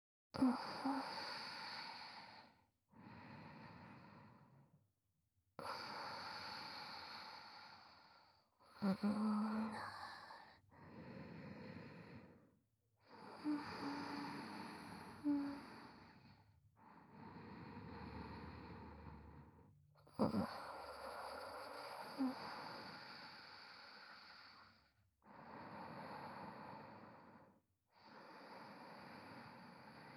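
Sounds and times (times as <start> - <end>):
sleeping breath: 0.4 - 4.8, 5.6 - 30.1.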